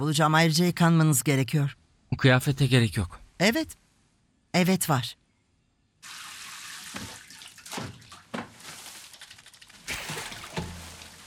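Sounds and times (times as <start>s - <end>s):
speech: 0.0s - 3.8s, 4.5s - 5.2s
water running to fill a bathtub: 6.0s - 11.2s.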